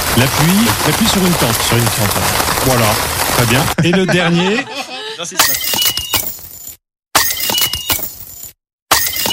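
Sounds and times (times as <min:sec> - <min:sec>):
speech: 0:00.2 - 0:05.8
laughter: 0:03.6 - 0:05.4
champagne glass shattering: 0:05.4 - 0:09.3.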